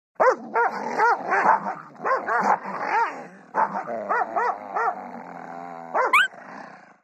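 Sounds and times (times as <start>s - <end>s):
dogs barking: 0.2s - 5.0s, 5.9s - 6.3s.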